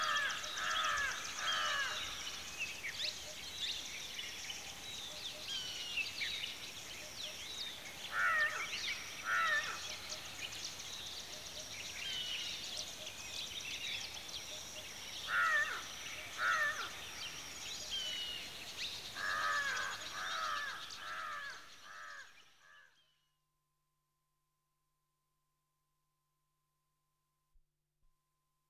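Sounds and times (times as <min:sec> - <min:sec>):
birds at a watering hole in the countryside of India, Pakistan or Nepal: 0:00.0 - 0:22.6.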